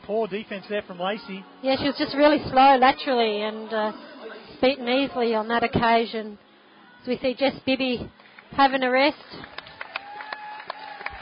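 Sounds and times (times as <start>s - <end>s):
speech: 0.1s - 9.4s
crowd applauding: 8.2s - 11.1s.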